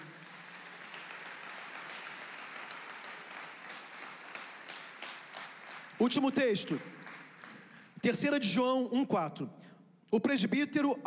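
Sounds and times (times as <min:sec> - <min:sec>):
audience applause: 0:00.0 - 0:08.0
speech: 0:06.0 - 0:07.0, 0:08.0 - 0:11.0.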